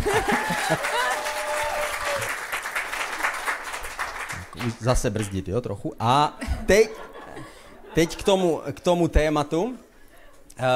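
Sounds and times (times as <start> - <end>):
laughter: 0.0 - 1.3, 6.4 - 8.6
audience applause: 0.0 - 5.4
speech: 0.3 - 1.0, 4.6 - 7.1, 8.0 - 9.8.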